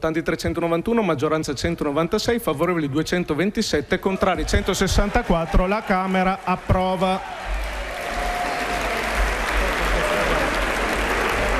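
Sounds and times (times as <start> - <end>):
speech: 0.0 - 7.6
sustained applause from a large parliament assembly after a vote: 5.0 - 11.5.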